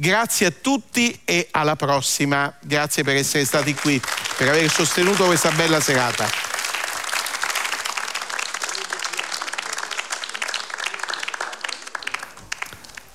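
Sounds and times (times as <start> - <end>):
speech: 0.0 - 6.5
audience applause in a hall: 3.5 - 13.1.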